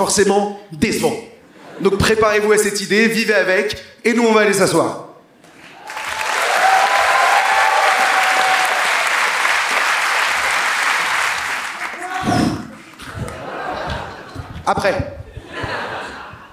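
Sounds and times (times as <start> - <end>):
speech: 0.0 - 5.0, 14.7 - 15.1
live audience clapping at a stage show at La Cigale: 5.4 - 14.4
laughter: 12.8 - 16.5.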